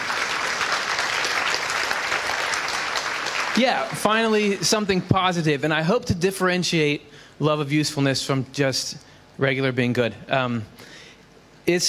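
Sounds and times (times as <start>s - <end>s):
crowd applauding: 0.0s - 5.0s
speech: 3.6s - 10.9s, 11.7s - 11.8s.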